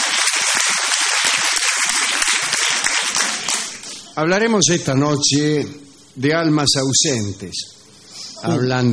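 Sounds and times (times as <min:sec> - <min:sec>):
live studio audience applause: 0:00.0 - 0:04.1
speech: 0:04.2 - 0:07.8, 0:08.4 - 0:08.9.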